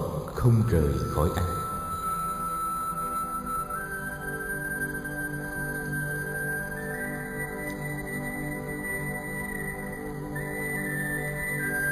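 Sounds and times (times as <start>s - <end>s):
sad flute melody: 0.0s - 11.9s
speech: 0.4s - 1.6s.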